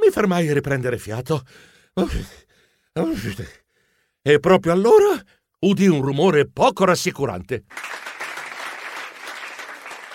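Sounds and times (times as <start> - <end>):
speech: 0.1 - 3.6, 4.2 - 8.0
applause: 7.7 - 10.1.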